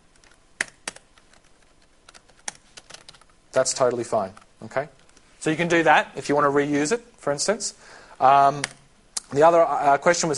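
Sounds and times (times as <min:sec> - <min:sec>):
typing on a computer keyboard: 0:00.1 - 0:03.4
speech: 0:03.6 - 0:10.3.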